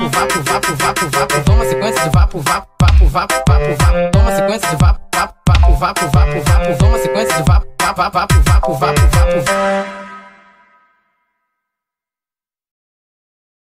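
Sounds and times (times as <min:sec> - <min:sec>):
brega funk music: 0:00.0 - 0:10.6.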